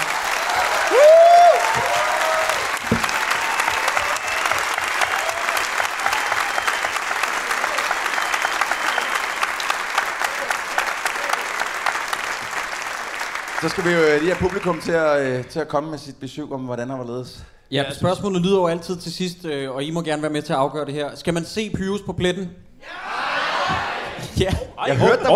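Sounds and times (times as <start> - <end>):
audience applause: 0.0 - 15.4
speech: 13.6 - 23.0, 24.4 - 25.3.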